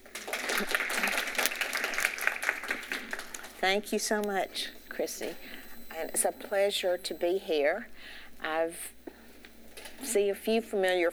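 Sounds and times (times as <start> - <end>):
audience applause welcoming a speaker: 0.0 - 3.6
speech: 0.6 - 0.8, 3.6 - 9.0, 10.0 - 11.1.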